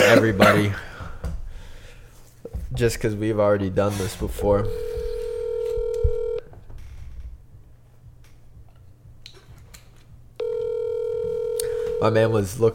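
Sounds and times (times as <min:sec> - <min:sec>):
speech: 0:00.1 - 0:00.9, 0:02.7 - 0:04.9, 0:12.0 - 0:12.7
outgoing phone call electronic ring tone: 0:04.7 - 0:06.5, 0:10.4 - 0:12.4.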